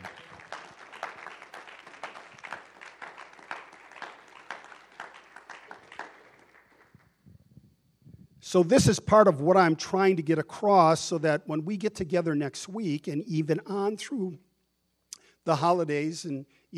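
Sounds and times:
audience clapping: 0:00.0 - 0:07.2
speech: 0:08.5 - 0:14.5, 0:15.4 - 0:16.7.

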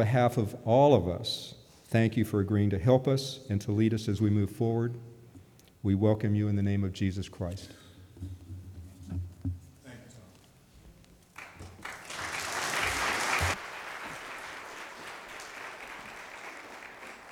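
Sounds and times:
speech: 0:00.0 - 0:05.1, 0:05.8 - 0:08.4
audience applause: 0:11.4 - 0:17.2.

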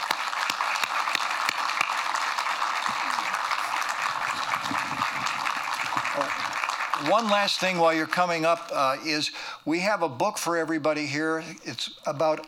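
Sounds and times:
applause: 0:00.0 - 0:08.8
speech: 0:07.0 - 0:12.4.

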